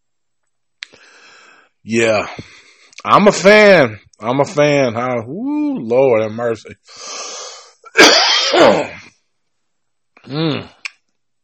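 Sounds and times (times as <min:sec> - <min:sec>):
speech: 0:01.8 - 0:07.3, 0:08.0 - 0:09.0, 0:10.3 - 0:10.8
coughing: 0:07.8 - 0:09.1.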